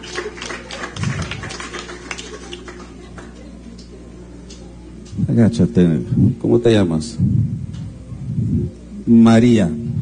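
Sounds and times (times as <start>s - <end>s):
crowd applauding after a baptism: 0.0s - 3.4s
speech: 5.3s - 7.5s, 9.1s - 9.8s.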